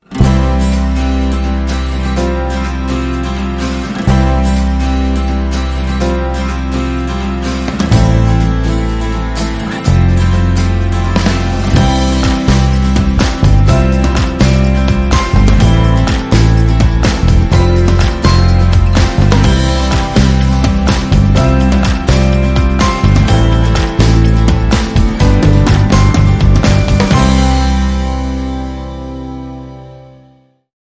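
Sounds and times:
warm indie anthem: 0:00.0 - 0:30.1.

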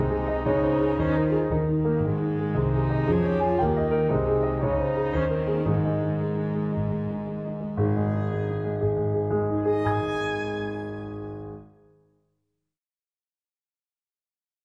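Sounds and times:
jig played on strings: 0:00.0 - 0:11.6.

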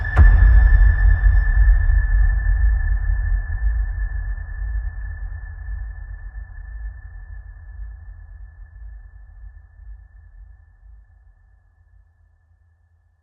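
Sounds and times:
horror hit: 0:00.1 - 0:08.9.

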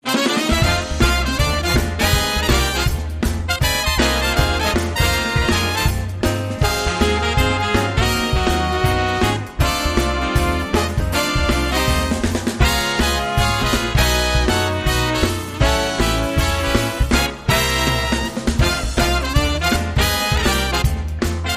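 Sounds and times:
brass shuffle: 0:00.0 - 0:21.5.

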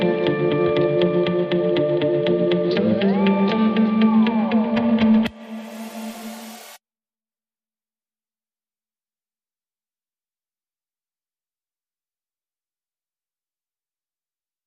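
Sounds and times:
guitars: 0:00.0 - 0:06.4.

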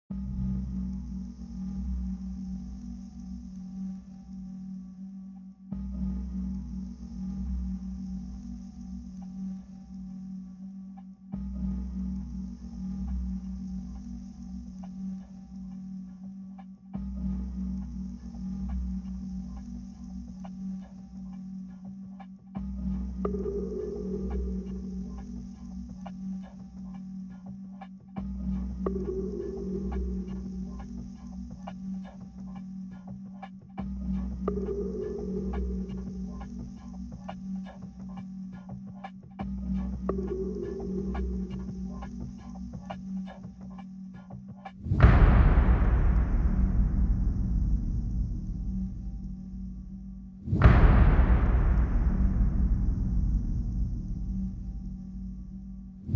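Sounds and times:
percussion: 0:00.1 - 0:56.1.

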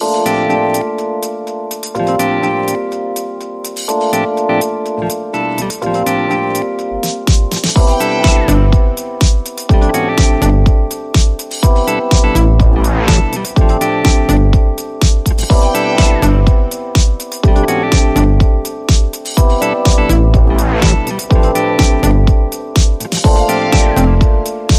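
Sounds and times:
electro swing underscore music: 0:00.0 - 0:24.7.

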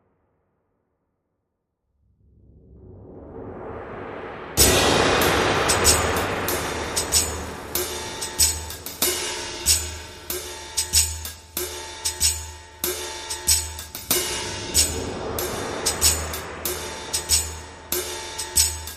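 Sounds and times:
cymbals: 0:04.6 - 0:18.9.

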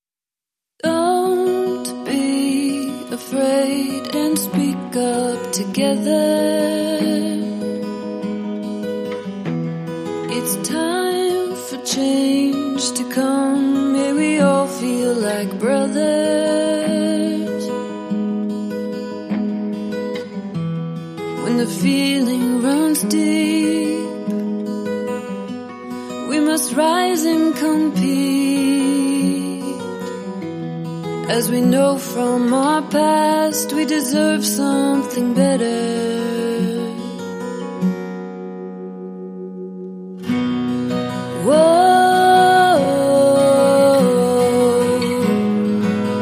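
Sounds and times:
person singing: 0:00.8 - 0:07.8, 0:10.3 - 0:17.9, 0:21.4 - 0:24.5, 0:26.0 - 0:30.4, 0:31.2 - 0:37.3, 0:40.9 - 0:46.2
acoustic guitars: 0:00.8 - 0:46.2.

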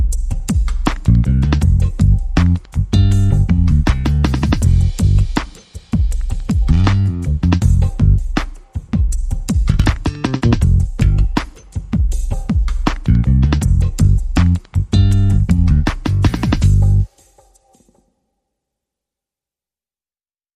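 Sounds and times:
drums: 0:00.0 - 0:18.0
bass guitar: 0:01.1 - 0:05.4, 0:06.7 - 0:08.4, 0:09.7 - 0:11.4, 0:13.0 - 0:17.1.

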